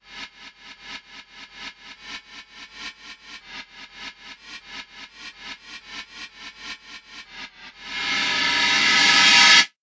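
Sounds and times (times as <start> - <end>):
reverse cymbal: 7.9 - 9.7.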